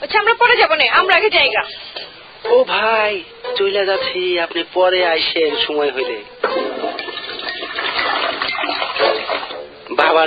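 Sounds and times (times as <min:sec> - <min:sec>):
speech: 0:00.1 - 0:07.0, 0:10.1 - 0:10.2
toilet flushing: 0:06.4 - 0:09.7.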